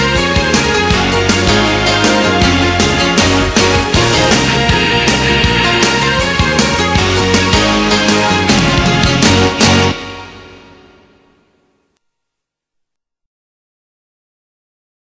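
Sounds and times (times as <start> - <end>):
baton music: 0.0 - 11.8.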